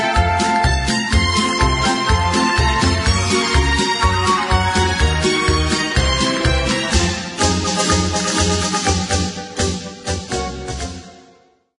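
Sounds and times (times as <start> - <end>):
Spanish flamenco music: 0.0 - 11.3.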